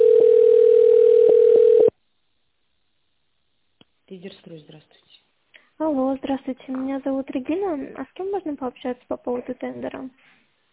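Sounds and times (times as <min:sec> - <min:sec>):
telephone line tone while a call is transferred to an administrator: 0:00.0 - 0:02.0
speech: 0:04.2 - 0:05.2, 0:05.8 - 0:10.4.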